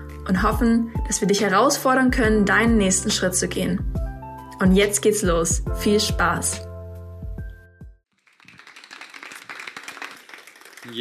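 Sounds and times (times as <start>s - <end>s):
speech: 0.3s - 4.0s, 4.6s - 6.7s
audience applause: 8.2s - 10.9s.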